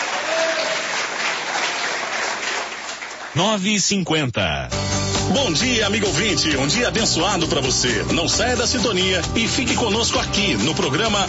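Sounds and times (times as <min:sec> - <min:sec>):
loud clapping: 0:00.0 - 0:03.4
speech: 0:03.4 - 0:11.2.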